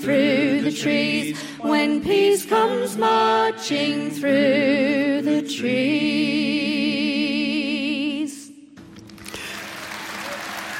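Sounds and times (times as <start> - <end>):
speech: 0.0 - 7.3
live audience applause at the end of a concert recorded for a live album: 8.8 - 10.7.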